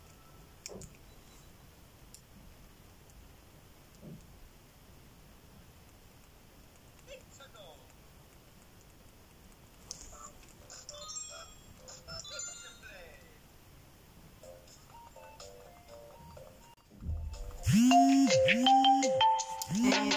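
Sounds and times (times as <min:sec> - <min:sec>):
incoming call phone ringtone: 0:10.9 - 0:13.0, 0:17.8 - 0:20.1
quieter electronic tones and blips: 0:17.6 - 0:20.1
speech: 0:18.5 - 0:19.0.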